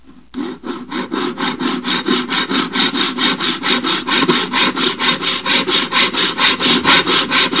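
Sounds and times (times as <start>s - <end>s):
saw cutting: 0.4s - 7.5s.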